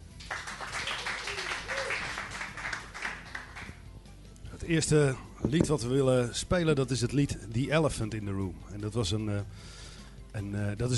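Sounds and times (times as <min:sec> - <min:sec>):
audience applause: 0:00.2 - 0:03.8
speech: 0:04.7 - 0:10.9.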